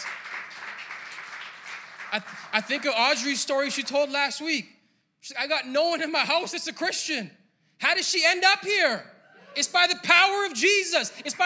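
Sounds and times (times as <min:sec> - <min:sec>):
audience clapping: 0:00.0 - 0:04.2, 0:11.1 - 0:11.4
speech: 0:02.1 - 0:11.4.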